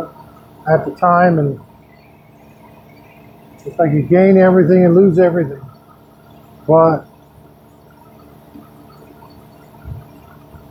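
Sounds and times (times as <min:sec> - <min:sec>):
speech: 0:00.0 - 0:01.7, 0:03.6 - 0:05.7, 0:06.7 - 0:07.1
air conditioning unit humming: 0:00.0 - 0:10.6.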